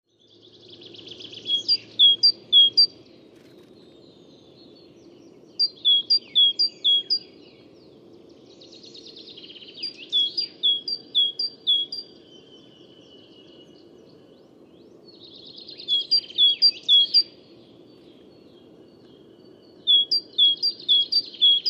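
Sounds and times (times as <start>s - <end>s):
great tit singing: 1.1s - 3.0s, 5.0s - 7.2s, 9.5s - 13.3s, 15.6s - 17.4s, 19.0s - 21.6s.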